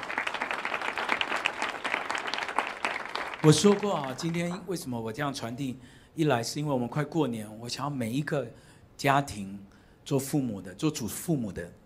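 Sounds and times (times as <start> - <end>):
audience applause: 0.0 - 4.6
speech: 3.4 - 11.8.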